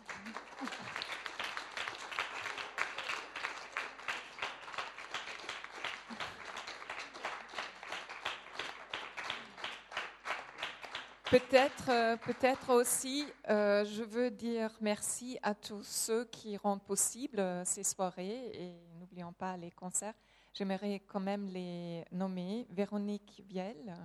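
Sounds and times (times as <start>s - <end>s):
audience applause: 0.0s - 12.6s
speech: 11.3s - 24.0s.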